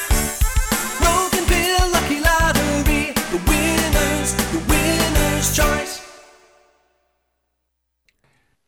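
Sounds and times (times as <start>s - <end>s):
music beds: 0.0s - 6.8s.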